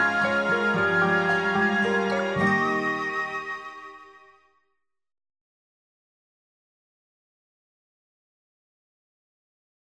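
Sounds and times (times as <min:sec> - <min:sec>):
easy listening and classical music: 0:00.0 - 0:04.4.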